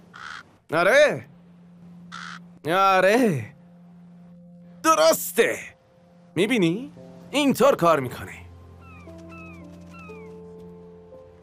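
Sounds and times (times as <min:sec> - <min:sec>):
crow cawing: 0:00.0 - 0:00.6, 0:02.1 - 0:02.5, 0:08.8 - 0:10.4
speech: 0:00.7 - 0:01.3, 0:02.6 - 0:03.6, 0:04.8 - 0:05.7, 0:06.4 - 0:08.4.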